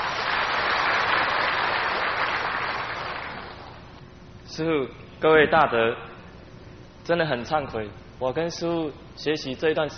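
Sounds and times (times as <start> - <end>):
warm audience applause: 0.0 - 3.8
speech: 4.6 - 6.1, 7.1 - 9.9.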